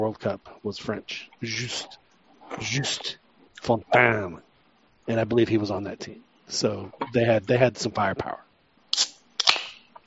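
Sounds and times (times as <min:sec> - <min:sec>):
speech: 0:00.0 - 0:04.5, 0:05.1 - 0:08.5
can of drink being cracked open: 0:08.9 - 0:09.8.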